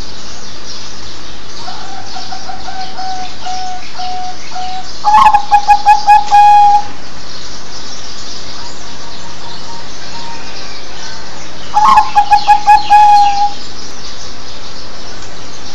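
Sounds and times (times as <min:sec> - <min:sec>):
zebra dove cooing: 0:01.6 - 0:06.9, 0:11.7 - 0:13.6.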